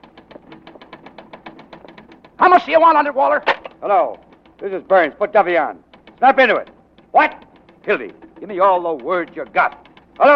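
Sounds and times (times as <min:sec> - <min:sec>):
typewriter typing: 0:00.0 - 0:10.3
speech: 0:02.4 - 0:10.3.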